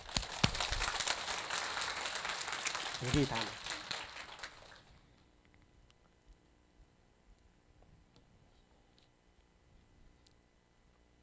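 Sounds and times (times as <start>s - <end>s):
audience applause: 0.0s - 5.0s
speech: 3.0s - 3.6s.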